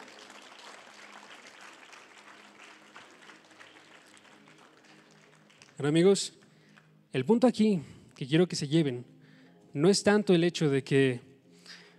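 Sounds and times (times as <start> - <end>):
audience applause: 0.0 - 5.8
speech: 5.8 - 6.4, 7.1 - 9.1, 9.8 - 11.3.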